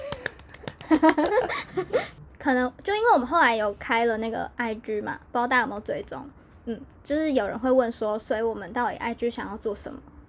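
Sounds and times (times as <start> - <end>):
applause: 0.0 - 1.6
laughter: 0.0 - 2.1
speech: 0.9 - 10.1.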